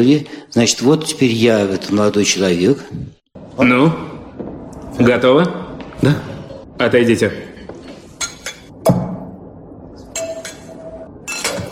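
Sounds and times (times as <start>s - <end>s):
speech: 0.0s - 4.1s, 4.9s - 7.5s
wine glasses clinking: 8.2s - 8.7s, 10.2s - 11.7s.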